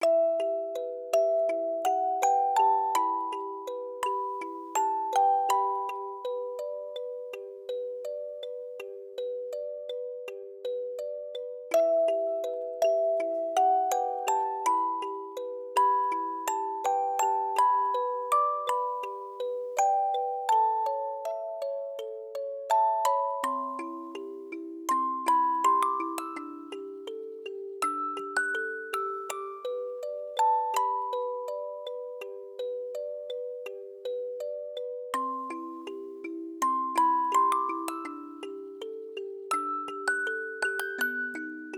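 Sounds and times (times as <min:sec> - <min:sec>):
music box: 0:00.0 - 0:41.7.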